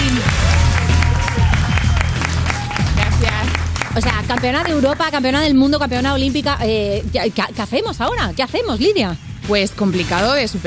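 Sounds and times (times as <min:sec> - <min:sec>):
applause: 0:00.0 - 0:05.4
speech: 0:04.0 - 0:10.6.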